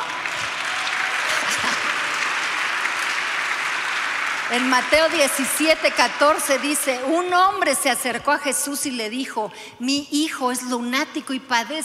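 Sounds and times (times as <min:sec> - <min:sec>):
audience applause: 0:00.0 - 0:07.2
speech: 0:04.5 - 0:11.8.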